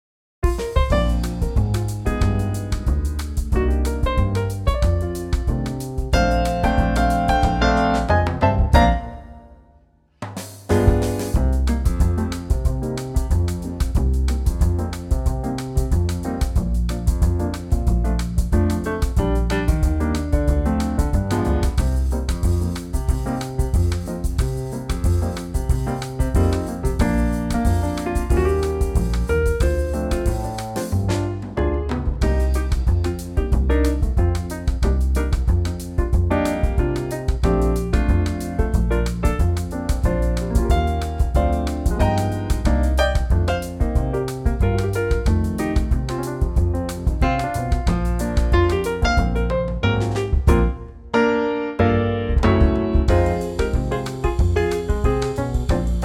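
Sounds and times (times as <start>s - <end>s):
B flat instrumental trio: 0.4s - 56.0s.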